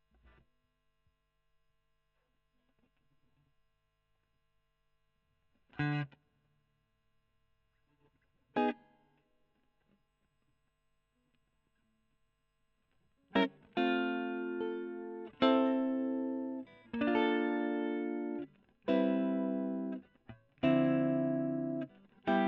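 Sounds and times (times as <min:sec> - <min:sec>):
electric guitar: 0:08.5 - 0:09.0, 0:13.3 - 0:22.4.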